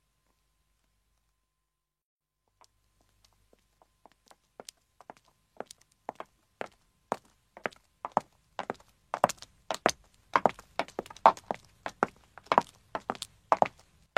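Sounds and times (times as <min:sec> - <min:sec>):
footsteps of men and women approaching: 0:03.0 - 0:14.1.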